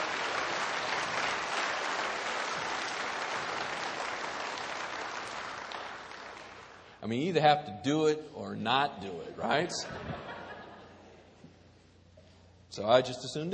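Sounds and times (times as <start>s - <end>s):
audience applause: 0.0s - 7.0s
speech: 7.0s - 10.3s, 12.8s - 13.5s
laughter: 9.5s - 11.4s.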